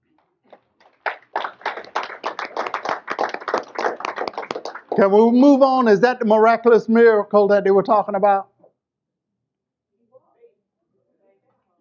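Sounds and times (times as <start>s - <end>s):
audience clapping: 0.5s - 6.6s
speech: 5.0s - 8.5s.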